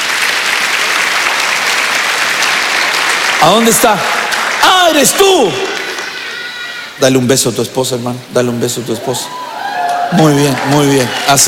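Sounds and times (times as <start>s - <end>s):
audience applause: 0.0s - 7.0s, 9.3s - 11.4s
speech: 3.4s - 4.2s, 4.8s - 5.7s, 7.0s - 9.5s, 10.1s - 11.4s.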